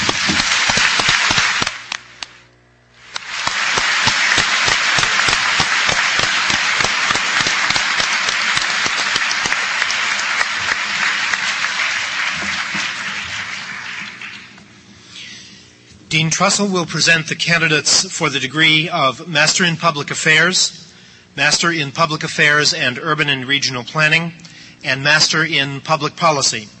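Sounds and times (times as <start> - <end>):
large audience applause: 0.0 - 2.0, 3.1 - 14.6
speech: 16.3 - 26.7.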